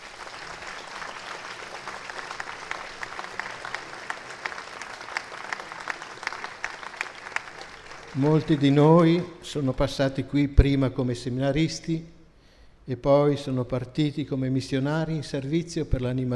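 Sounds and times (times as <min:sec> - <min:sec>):
audience applause: 0:00.0 - 0:09.3
speech: 0:08.2 - 0:12.1, 0:12.9 - 0:16.3.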